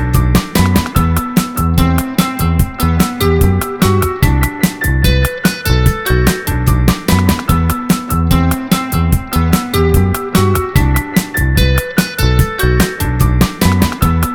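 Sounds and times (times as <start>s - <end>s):
E minor chord loop: 0.0s - 14.3s.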